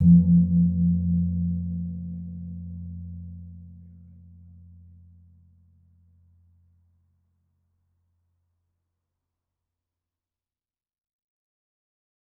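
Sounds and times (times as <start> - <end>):
kempul gong of a gamelan: 0.0 - 4.5.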